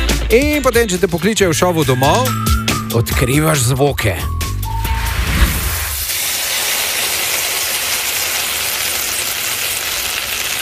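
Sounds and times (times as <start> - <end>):
speech: 0.3 - 4.4
low rumble: 4.6 - 6.1
breaded chicken sizzling in hot oil: 6.1 - 10.6.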